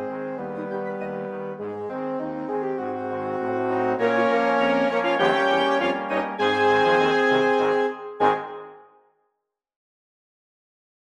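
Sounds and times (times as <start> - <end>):
polka music: 0.0 - 8.9.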